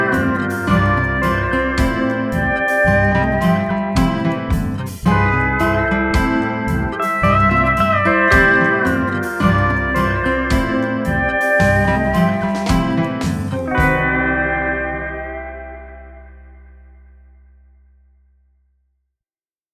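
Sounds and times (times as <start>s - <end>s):
island shuffle music: 0.0s - 15.5s.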